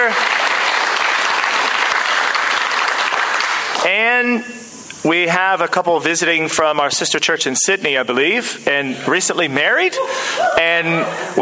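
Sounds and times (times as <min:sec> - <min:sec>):
crowd applause: 0:00.0 - 0:03.9
speech: 0:03.8 - 0:11.4.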